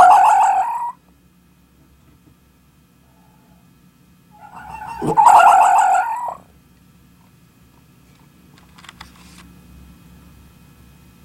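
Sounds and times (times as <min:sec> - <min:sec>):
fox screaming: 0:00.0 - 0:01.0, 0:04.4 - 0:06.5
low hum: 0:02.0 - 0:06.6.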